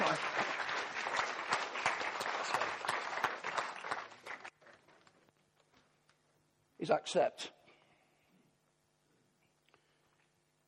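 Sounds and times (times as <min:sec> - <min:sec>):
audience clapping: 0:00.0 - 0:05.2
speech: 0:06.8 - 0:07.6.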